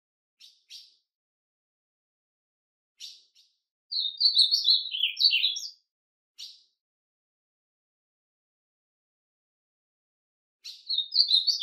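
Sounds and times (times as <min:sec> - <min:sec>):
ultramarine grosbeak singing: 0:00.4 - 0:01.0, 0:03.0 - 0:05.8, 0:06.4 - 0:06.7, 0:10.6 - 0:11.6.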